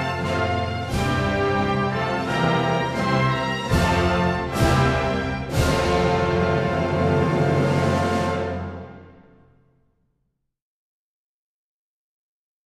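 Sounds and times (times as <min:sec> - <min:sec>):
national anthem music: 0:00.0 - 0:09.7.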